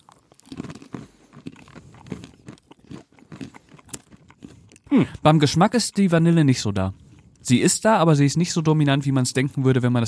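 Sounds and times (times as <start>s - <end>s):
crunching vanilla-sugar coated cashews: 0.0s - 4.9s
speech: 4.9s - 10.0s.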